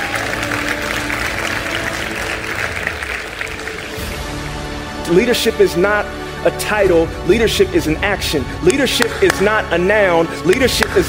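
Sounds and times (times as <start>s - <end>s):
audience applause: 0.0s - 5.0s
speech: 5.1s - 11.0s.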